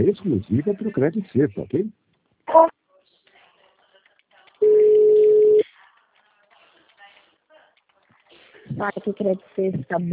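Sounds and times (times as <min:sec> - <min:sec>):
speech: 0:00.0 - 0:02.7, 0:08.7 - 0:10.1
telephone line tone during a call transfer: 0:04.6 - 0:05.6.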